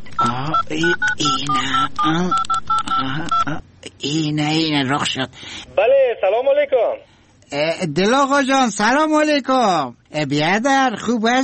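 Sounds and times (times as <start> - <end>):
telephone number being dialed with touch-tone beeps: 0.2 - 3.5
speech: 0.2 - 11.4.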